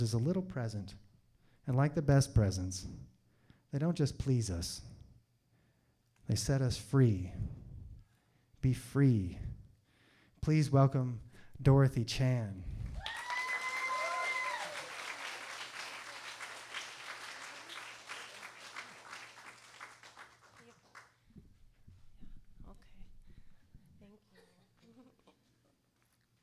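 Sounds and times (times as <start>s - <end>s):
speech: 0.0s - 3.1s, 3.7s - 4.9s, 6.3s - 7.6s, 8.6s - 9.6s, 10.4s - 13.2s
audience applause: 13.0s - 21.1s.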